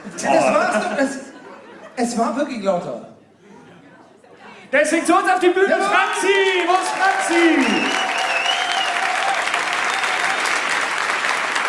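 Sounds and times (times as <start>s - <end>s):
speech: 0.0s - 1.3s, 2.0s - 3.1s, 4.7s - 8.0s
laughter: 0.0s - 2.4s
audience applause: 6.0s - 11.6s
faint tonal whistle or cheer: 7.3s - 10.6s.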